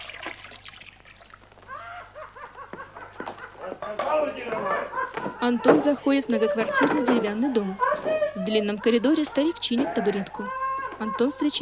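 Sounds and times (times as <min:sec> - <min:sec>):
woman pouring hot water from a cauldron into a wooden tub: 0:00.0 - 0:01.6
laughter: 0:01.7 - 0:11.6
speech: 0:03.9 - 0:11.6.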